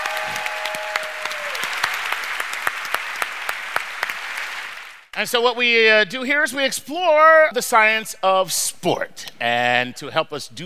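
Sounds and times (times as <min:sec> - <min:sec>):
audience applause: 0:00.0 - 0:05.1
speech: 0:05.2 - 0:10.6.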